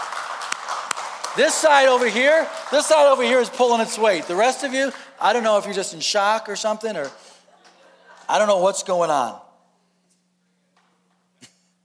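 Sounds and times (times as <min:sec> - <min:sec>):
single audience clap: 0:00.0 - 0:05.8, 0:06.8 - 0:08.4
speech: 0:01.4 - 0:07.3, 0:08.3 - 0:09.4.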